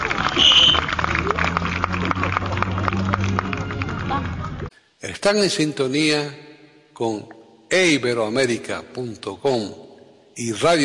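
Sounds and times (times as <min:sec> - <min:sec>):
farewell applause: 0:00.0 - 0:04.7
speech: 0:05.2 - 0:06.4, 0:07.0 - 0:09.8, 0:10.4 - 0:10.8.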